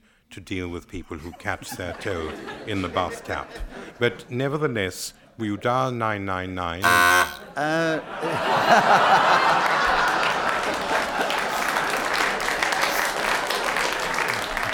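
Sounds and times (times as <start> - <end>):
speech: 0.4 - 9.5
laughter: 1.2 - 4.2, 7.4 - 13.4
audience applause: 8.9 - 14.7.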